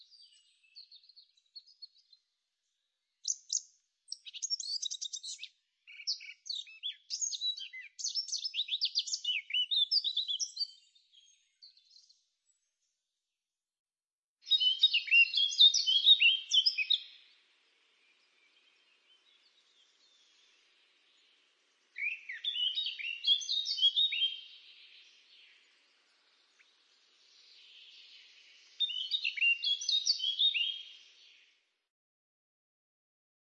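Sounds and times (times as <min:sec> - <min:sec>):
Eurasian blackcap song: 0:03.2 - 0:12.6, 0:14.5 - 0:31.5.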